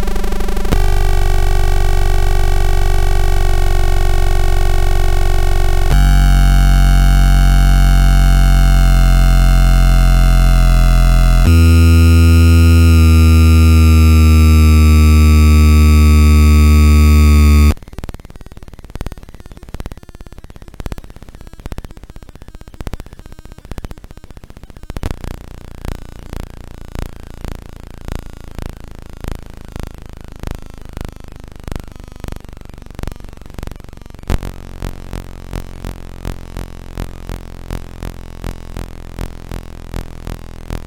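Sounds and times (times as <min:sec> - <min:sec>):
circuit bent Gameboy noise: 0:00.0 - 0:17.8, 0:32.8 - 0:40.8
circuit bent Gameboy triangle wave tone: 0:00.7 - 0:17.8.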